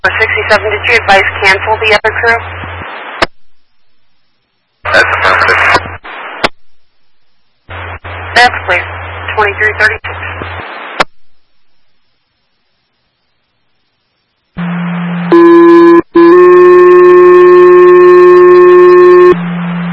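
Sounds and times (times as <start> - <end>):
speech: 0.0 - 2.7, 8.4 - 10.2
radio static: 0.0 - 3.4, 4.8 - 6.8, 7.7 - 11.2, 14.6 - 19.9.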